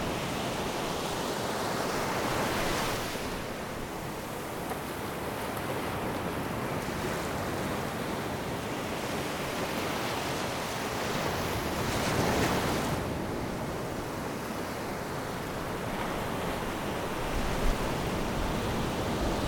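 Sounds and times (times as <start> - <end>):
ocean: 0.0 - 19.4.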